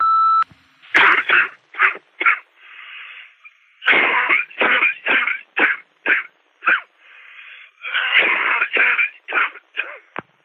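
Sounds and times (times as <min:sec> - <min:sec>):
coughing: 0:00.9 - 0:02.5, 0:03.8 - 0:07.0, 0:07.8 - 0:10.2.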